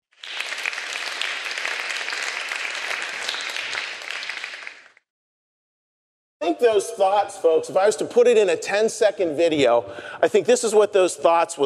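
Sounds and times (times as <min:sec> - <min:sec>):
audience applause: 0:00.1 - 0:05.0
speech: 0:06.5 - 0:11.6.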